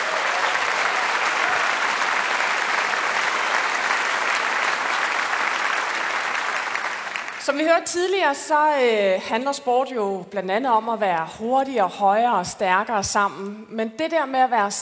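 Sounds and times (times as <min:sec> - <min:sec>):
audience applause: 0:00.0 - 0:07.6
speech: 0:07.5 - 0:14.7.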